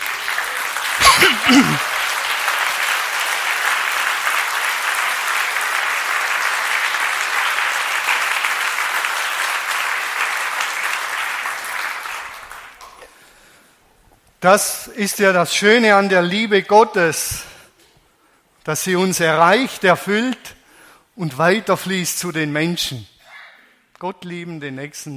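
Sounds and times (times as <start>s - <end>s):
audience applause: 0.0s - 12.9s
speech: 1.2s - 1.9s, 14.4s - 17.5s, 18.6s - 20.6s, 21.2s - 23.1s, 24.0s - 25.1s.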